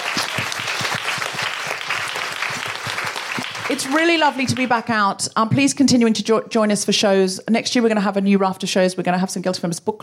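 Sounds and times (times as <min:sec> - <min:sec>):
audience applause: 0:00.0 - 0:04.9
speech: 0:03.7 - 0:10.0.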